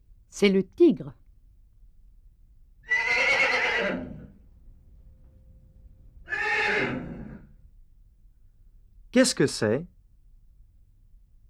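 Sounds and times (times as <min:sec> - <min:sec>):
speech: 0:00.3 - 0:01.2, 0:09.2 - 0:09.9
horse neighing: 0:02.9 - 0:04.4, 0:06.2 - 0:07.6.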